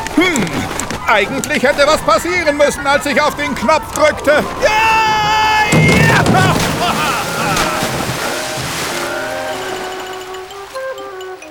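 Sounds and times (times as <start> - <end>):
churning waves: 0.0 - 11.4
laughter: 0.4 - 9.6
speech: 1.1 - 7.2
horse-drawn wagon crashing into the sea: 4.4 - 10.6.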